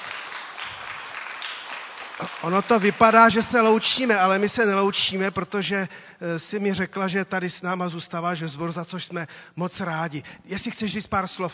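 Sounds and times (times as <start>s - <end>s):
audience clapping: 0.0s - 4.6s
speech: 2.2s - 11.5s.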